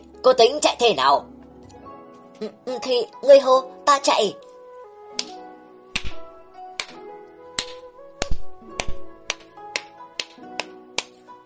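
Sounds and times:
speech: 0.2s - 1.3s, 2.4s - 4.5s
slow crisp hand claps: 5.2s - 5.4s, 6.0s - 7.0s, 7.6s - 11.2s.

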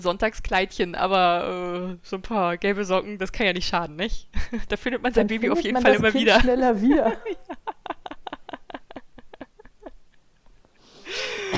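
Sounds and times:
speech: 0.0s - 7.6s
breathy laughter: 7.1s - 11.5s
harsh raspy cough: 11.2s - 11.5s.

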